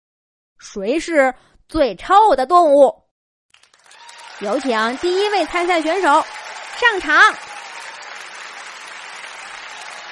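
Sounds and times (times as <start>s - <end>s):
speech: 0.6s - 3.0s, 4.4s - 7.5s
crowd applause and cheering: 3.6s - 10.1s.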